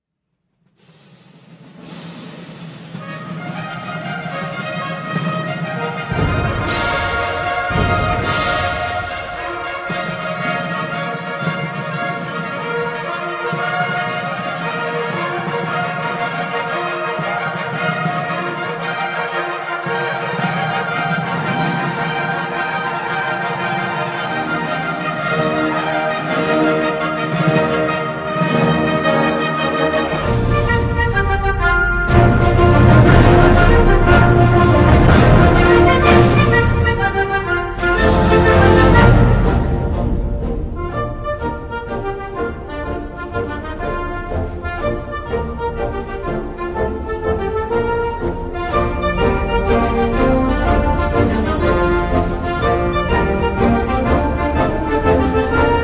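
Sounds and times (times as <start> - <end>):
national anthem: 2.0 - 55.8.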